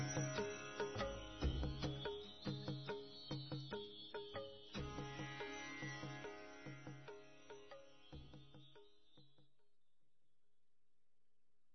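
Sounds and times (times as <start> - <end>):
fusion raga music: 0.0 - 8.8.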